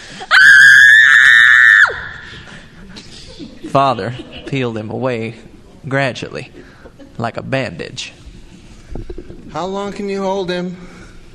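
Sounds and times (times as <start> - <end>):
child screaming: 0.3 - 2.1
laughter: 2.3 - 4.8
speech: 3.7 - 6.6, 7.2 - 8.2, 9.5 - 10.9.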